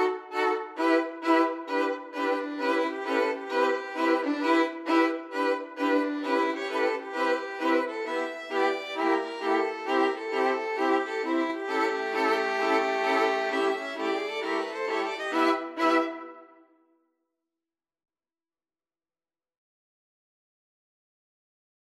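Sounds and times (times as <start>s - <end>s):
violin ensemble: 0.0s - 16.6s.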